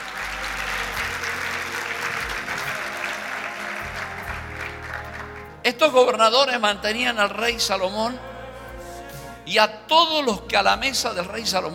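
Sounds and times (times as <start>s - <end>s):
audience applauding: 0.0s - 5.6s
speech: 5.7s - 8.3s, 9.5s - 11.7s.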